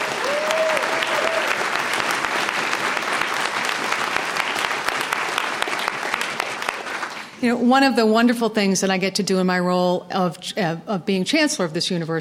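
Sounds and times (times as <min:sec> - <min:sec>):
audience applause: 0:00.0 - 0:07.4
speech: 0:07.4 - 0:12.1.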